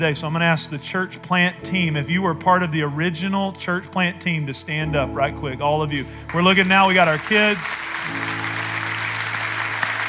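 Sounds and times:
speech: 0.0s - 8.4s
audience applause: 6.3s - 10.0s.

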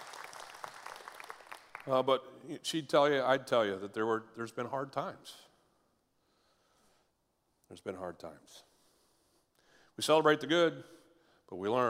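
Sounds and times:
audience applause: 0.0s - 1.9s
speech: 1.8s - 5.5s, 7.7s - 8.7s, 10.0s - 11.8s.

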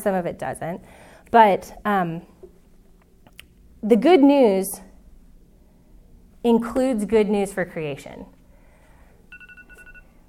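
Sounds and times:
speech: 0.0s - 2.3s, 3.8s - 4.9s, 6.4s - 8.4s
timer beeping: 9.3s - 10.1s.

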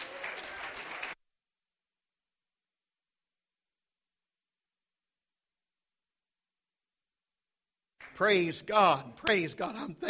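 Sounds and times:
audience clapping hands: 0.0s - 1.2s, 8.0s - 9.4s
speech: 8.2s - 10.0s.

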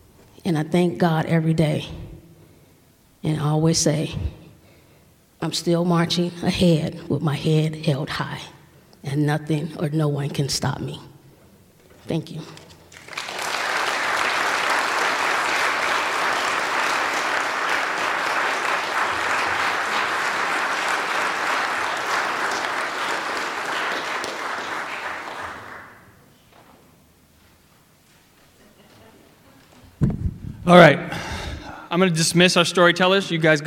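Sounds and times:
speech: 0.4s - 2.0s, 3.2s - 4.4s, 5.4s - 11.1s, 12.0s - 12.6s, 30.7s - 31.0s, 32.0s - 33.6s
audience applause: 12.9s - 26.0s.

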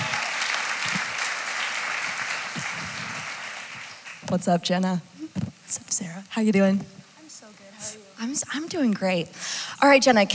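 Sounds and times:
crowd applause: 0.0s - 4.2s
speech: 4.3s - 5.1s, 5.7s - 7.0s, 8.2s - 10.3s.

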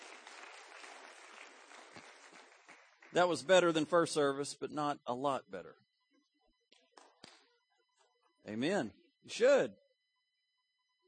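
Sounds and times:
audience applause: 0.0s - 3.7s
speech: 3.1s - 5.8s, 8.5s - 9.8s.

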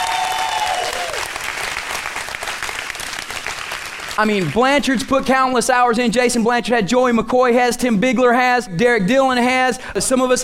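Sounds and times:
large crowd applauding: 0.0s - 5.1s
speech: 4.2s - 10.4s.

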